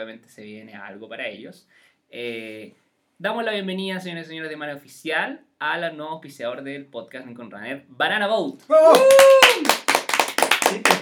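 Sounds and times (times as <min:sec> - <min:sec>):
speech: 0:00.0 - 0:09.8, 0:10.7 - 0:11.0
applause: 0:08.8 - 0:11.0.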